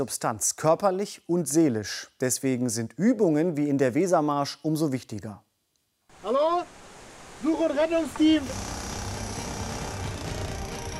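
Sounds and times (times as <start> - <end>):
speech: 0.0 - 5.4, 7.6 - 8.7
sawing through wooden boards: 8.1 - 10.9.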